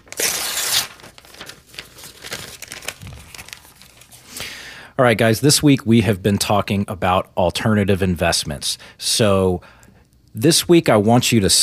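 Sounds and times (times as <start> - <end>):
paper crinkling and rustling: 0.0 - 4.3
paper envelope torn open: 0.0 - 4.3
speech: 5.0 - 9.8, 10.4 - 11.6.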